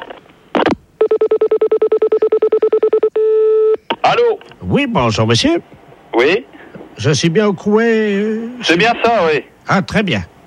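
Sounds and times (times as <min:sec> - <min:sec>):
electronic dialing beeps: 0:01.0 - 0:03.9
steady telephone tone: 0:01.0 - 0:03.9
speech: 0:04.2 - 0:10.3.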